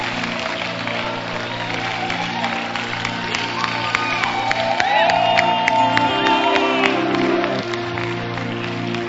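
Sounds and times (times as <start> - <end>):
audience clapping: 0.0 - 9.0
audience whoops and shouts: 0.8 - 7.8.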